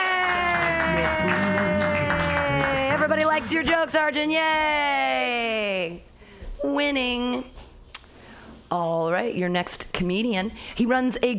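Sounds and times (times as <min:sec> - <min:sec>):
audience clapping wildly: 0:00.0 - 0:03.9
speech: 0:03.4 - 0:06.1, 0:06.7 - 0:07.5, 0:08.7 - 0:11.3.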